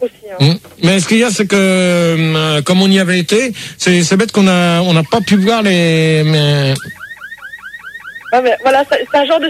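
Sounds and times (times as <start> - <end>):
speech: 0.0 - 7.0, 8.3 - 9.4
police siren wailing: 4.9 - 9.4.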